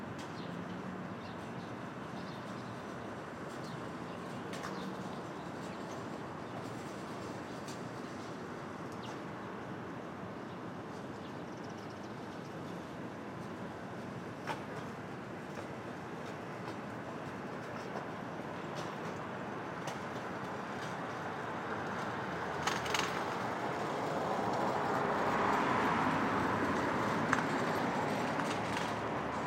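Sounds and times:
street traffic at dawn in Brooklyn: 0.0s - 29.4s.

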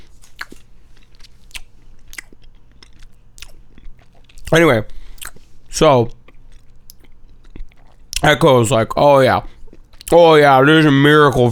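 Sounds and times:
chewing candy: 0.0s - 8.3s, 9.2s - 10.3s
speech: 4.5s - 5.0s, 5.8s - 6.2s, 8.2s - 11.5s.

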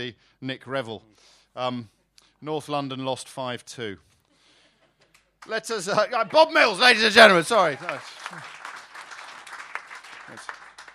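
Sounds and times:
speech: 0.0s - 4.1s, 5.4s - 8.6s, 10.3s - 10.6s
audience applauding: 5.4s - 10.9s.

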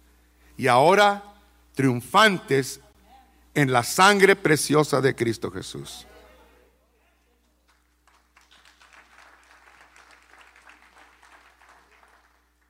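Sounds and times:
speech: 0.6s - 2.8s, 3.6s - 6.1s
faint audience applause: 7.6s - 12.6s.

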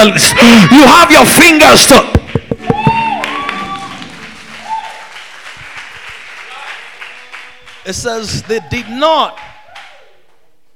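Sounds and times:
speech: 0.0s - 2.2s, 7.9s - 9.5s
hand clapping: 2.1s - 10.4s.

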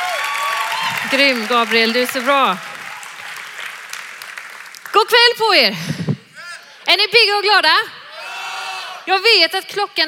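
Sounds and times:
crowd applauding: 0.0s - 5.2s
speech: 1.1s - 2.7s, 5.0s - 6.0s, 6.9s - 8.0s, 9.0s - 10.0s.

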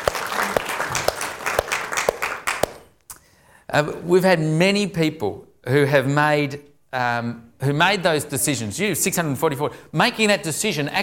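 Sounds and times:
audience applause: 0.0s - 2.8s
speech: 3.7s - 11.0s.

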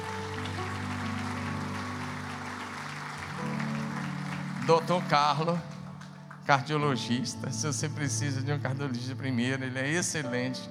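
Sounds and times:
crowd applause: 0.0s - 7.0s
speech: 4.7s - 5.7s, 6.4s - 10.6s.

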